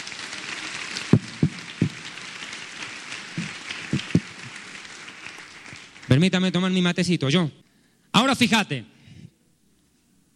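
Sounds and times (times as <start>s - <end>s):
audience applause: 0.0s - 6.3s
speech: 6.1s - 7.6s, 8.3s - 8.9s.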